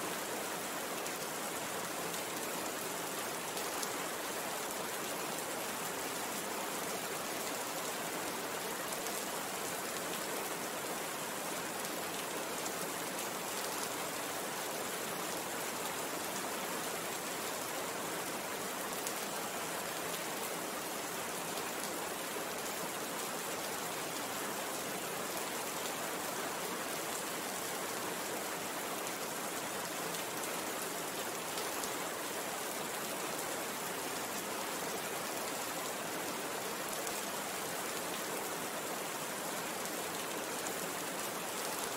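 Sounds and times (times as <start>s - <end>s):
rain without thunder: 0.0s - 41.9s.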